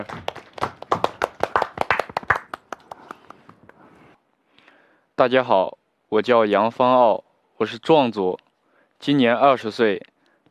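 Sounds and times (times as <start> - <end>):
audience clapping to welcome a performer onto a stage: 0.0 - 3.9
speech: 5.2 - 8.4, 9.0 - 10.4.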